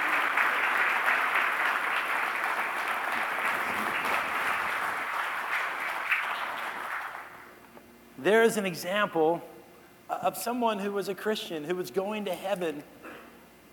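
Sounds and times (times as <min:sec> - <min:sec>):
crowd clapping: 0:00.0 - 0:07.6
speech: 0:08.2 - 0:09.5, 0:10.2 - 0:13.0.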